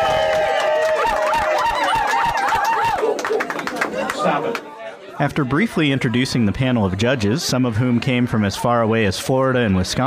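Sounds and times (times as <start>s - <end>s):
audience applause: 0.0s - 4.8s
crowd cheering: 0.0s - 8.2s
speech: 5.2s - 10.0s.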